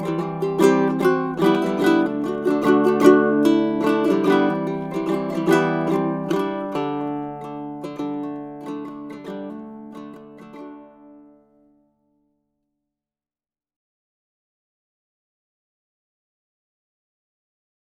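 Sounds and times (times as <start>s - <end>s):
baritone ukulele: 0.0s - 11.8s.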